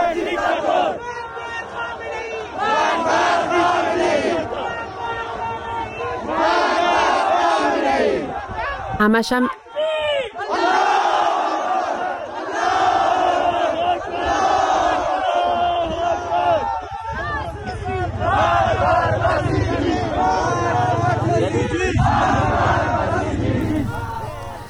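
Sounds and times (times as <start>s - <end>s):
protesting crowd chanting in the street in Zahedan: 0.0s - 24.6s
speech: 9.0s - 9.6s.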